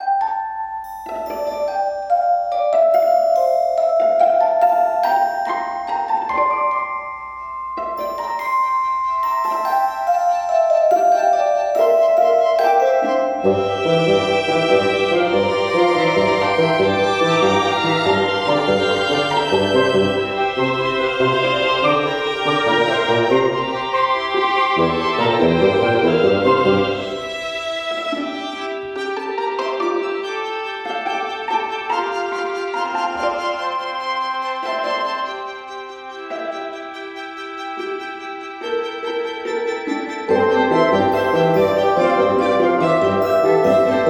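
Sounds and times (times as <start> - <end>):
careless quirky classical underscore: 0.0 - 44.0.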